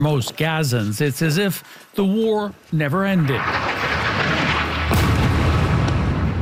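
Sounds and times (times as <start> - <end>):
speech: 0.0 - 4.0
airstrike explosion on a mosque and refugee camp in Gaza: 3.3 - 6.4
roaring rumble: 3.3 - 6.4.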